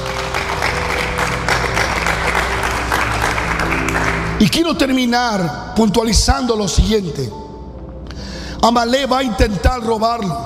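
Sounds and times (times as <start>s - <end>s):
audience applause: 0.0s - 4.4s
speech: 4.4s - 7.4s, 8.6s - 10.4s.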